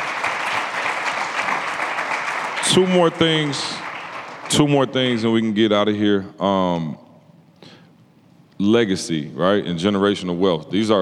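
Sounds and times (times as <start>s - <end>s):
audience clapping: 0.0s - 5.3s
speech: 2.8s - 3.8s, 4.5s - 7.0s, 8.6s - 10.9s.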